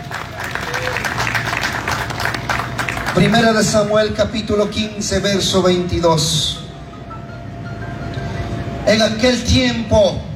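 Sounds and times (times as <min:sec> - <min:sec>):
crowd applause: 0:00.0 - 0:03.6
speech: 0:03.2 - 0:06.6, 0:08.9 - 0:10.3.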